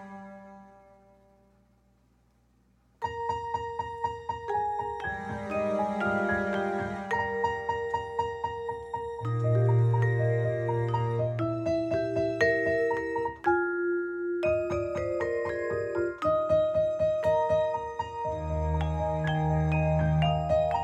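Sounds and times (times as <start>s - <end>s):
MIDI piano: 0.0s - 1.5s, 3.0s - 20.8s
MIDI vibraphone: 3.0s - 20.8s
MIDI arpeggio in free improvisation: 3.1s - 20.8s
MIDI string ensemble: 5.1s - 7.5s, 9.2s - 11.4s, 18.4s - 20.8s.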